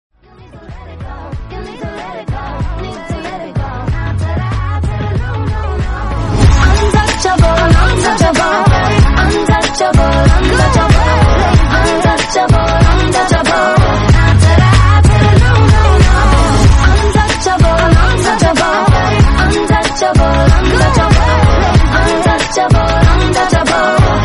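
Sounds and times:
English rap song ringtone: 0.5s - 24.2s.

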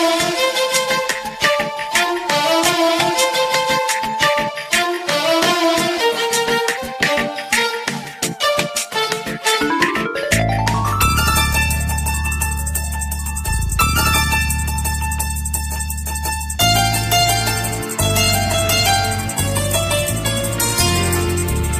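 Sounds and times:
Malayalam ringtone: 0.0s - 21.7s.

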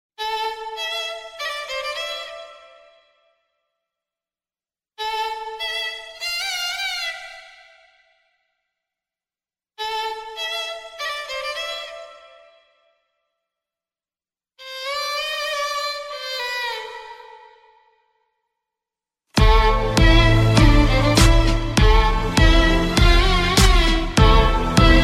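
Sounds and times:
violin ringtone: 19.4s - 25.0s.

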